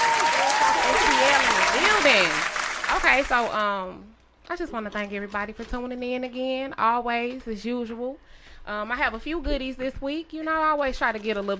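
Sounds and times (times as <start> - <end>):
crowd clapping: 0.0 - 3.6
speech: 2.0 - 11.5.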